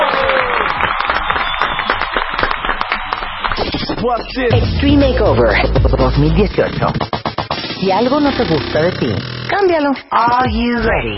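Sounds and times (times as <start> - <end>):
applause: 0.0 - 4.0
speech: 4.0 - 7.2, 7.8 - 11.1.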